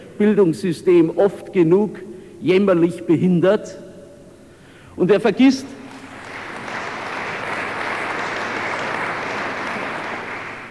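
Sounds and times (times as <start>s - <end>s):
speech: 0.2s - 3.8s, 5.0s - 5.8s
audience applauding during a speech: 5.9s - 10.6s.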